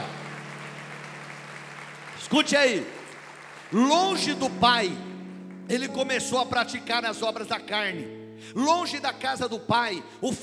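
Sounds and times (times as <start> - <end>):
audience clapping: 0.0 - 6.3
speech: 2.2 - 3.0, 3.7 - 5.1, 5.7 - 10.4.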